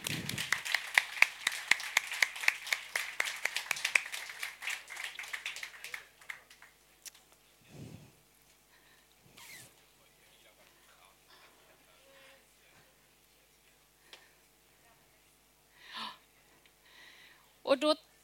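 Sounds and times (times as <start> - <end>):
applause: 0.0 - 6.8.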